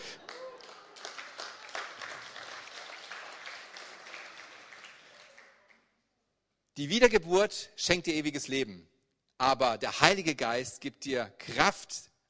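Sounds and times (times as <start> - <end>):
audience applauding and cheering: 0.0 - 5.9
speech: 6.8 - 12.2.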